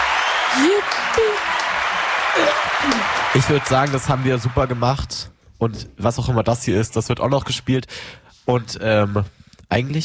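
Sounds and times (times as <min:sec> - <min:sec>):
applause: 0:00.0 - 0:05.2
speech: 0:00.6 - 0:01.6, 0:02.4 - 0:10.0.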